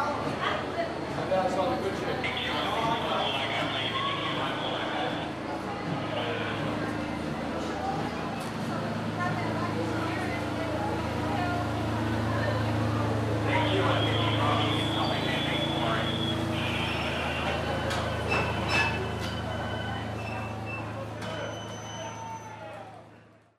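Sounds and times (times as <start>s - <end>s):
steam train arriving: 0.0s - 23.4s.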